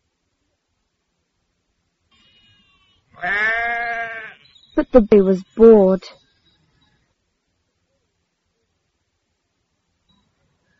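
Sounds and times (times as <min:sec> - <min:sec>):
sheep bleating: 0:02.4 - 0:04.5
speech: 0:03.2 - 0:03.6, 0:04.8 - 0:06.2.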